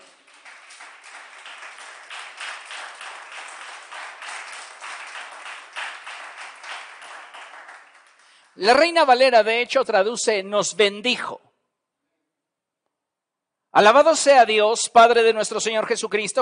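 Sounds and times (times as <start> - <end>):
audience applauding: 0.0 - 8.6
speech: 8.6 - 11.4, 13.8 - 16.3.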